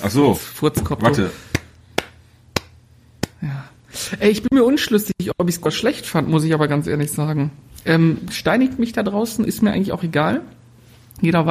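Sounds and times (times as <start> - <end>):
speech: 0.0 - 1.5, 4.1 - 10.6, 11.2 - 11.4
hand clapping as applause: 1.5 - 3.4.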